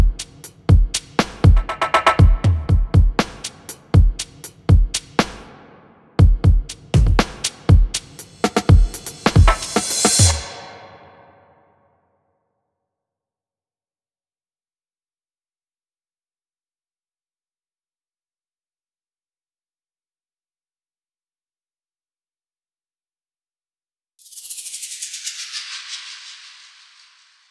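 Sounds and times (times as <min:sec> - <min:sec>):
drums: 0:00.0 - 0:11.0.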